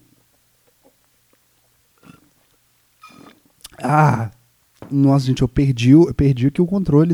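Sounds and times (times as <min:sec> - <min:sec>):
person gulping water: 0:03.0 - 0:04.4
speech: 0:03.8 - 0:07.1.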